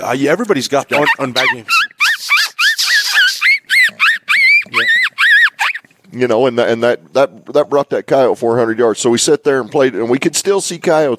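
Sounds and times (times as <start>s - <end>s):
speech: 0.0s - 2.3s, 6.2s - 11.1s
electronic vole squeak predator call: 0.9s - 5.9s.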